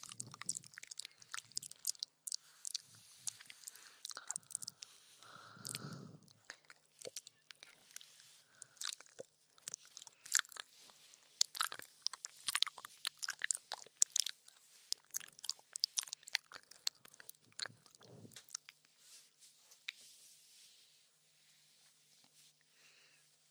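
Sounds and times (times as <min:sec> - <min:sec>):
woman licking ears with lots of saliva: 0:00.0 - 0:18.7.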